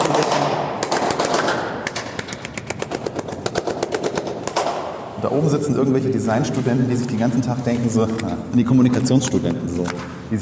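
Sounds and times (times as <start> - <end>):
hand claps in acoustic installation: 0.0 - 4.9
speech: 5.3 - 10.4.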